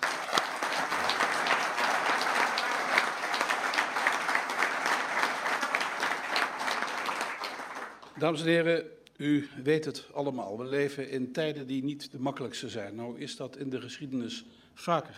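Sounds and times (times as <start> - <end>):
audience applause: 0.0 - 8.2
speech: 8.2 - 15.1.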